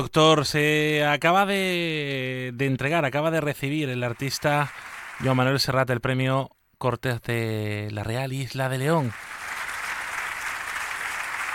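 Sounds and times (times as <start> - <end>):
speech: 0.0 - 9.4
Teatro de las Cortes audience applause: 3.6 - 5.8, 9.0 - 11.5.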